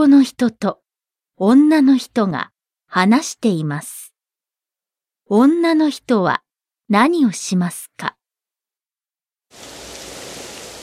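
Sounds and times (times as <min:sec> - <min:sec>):
speech: 0:00.0 - 0:00.8, 0:01.4 - 0:04.1, 0:05.3 - 0:08.2, 0:09.5 - 0:09.8
rain falling: 0:09.5 - 0:10.8.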